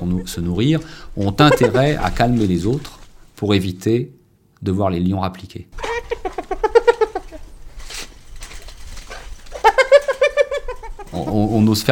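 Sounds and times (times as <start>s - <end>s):
hyenas giggling: 0.0s - 2.2s, 5.8s - 7.5s, 9.1s - 11.3s
speech: 0.0s - 6.3s, 11.2s - 11.9s
rustling: 0.6s - 3.7s, 5.8s - 11.9s.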